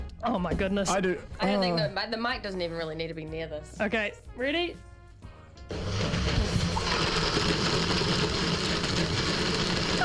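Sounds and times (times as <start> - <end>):
speech: 0.2 - 4.9
blender running: 5.7 - 10.0.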